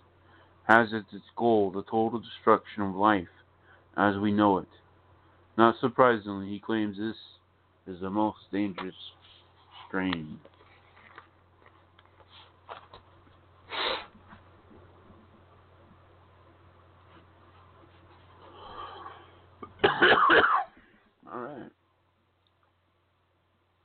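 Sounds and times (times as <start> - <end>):
speech: 0.7 - 3.4, 4.0 - 4.8, 5.6 - 9.2, 9.9 - 10.5
person coughing: 19.6 - 20.8.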